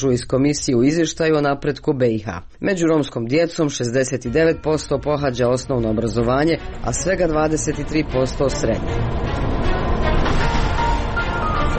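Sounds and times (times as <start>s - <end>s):
speech: 0.0s - 9.4s
bus interior rumble travelling from Ilijaš to Sarajevo: 5.8s - 11.7s.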